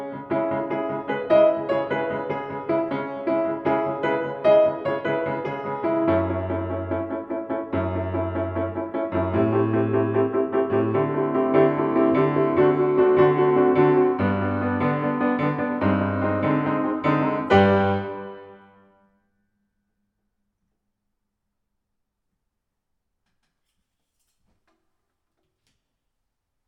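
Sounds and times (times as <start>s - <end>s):
solo piano: 0.0s - 19.0s.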